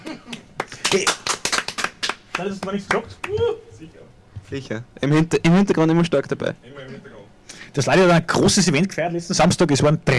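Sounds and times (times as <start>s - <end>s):
small applause: 0.2s - 3.6s
speech: 0.9s - 1.2s, 2.4s - 7.1s, 7.7s - 10.1s.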